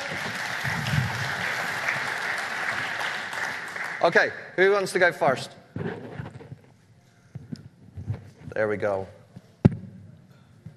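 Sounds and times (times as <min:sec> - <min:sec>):
crowd clapping: 0:00.0 - 0:04.4
speech: 0:04.0 - 0:05.6, 0:08.6 - 0:09.2.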